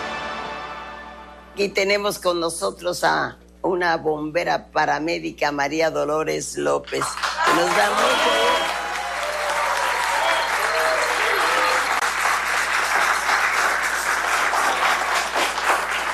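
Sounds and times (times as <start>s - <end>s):
speech: 1.6s - 8.5s
crowd applauding: 7.0s - 16.1s.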